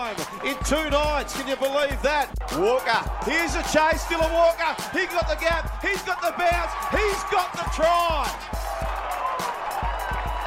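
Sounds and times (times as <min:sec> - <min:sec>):
stadium crowd cheering after a try: 0:00.0 - 0:10.4
speech: 0:00.5 - 0:08.6
whoops: 0:08.3 - 0:10.4.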